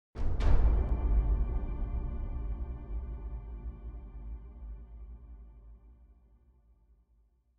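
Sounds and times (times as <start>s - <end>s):
big drums: 0.2s - 3.2s.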